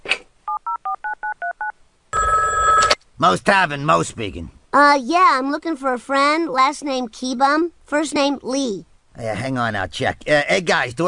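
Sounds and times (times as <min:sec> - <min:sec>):
touch-tone telephone dialing for a cartoon prank call: 0:00.5 - 0:03.0
speech: 0:03.2 - 0:11.0.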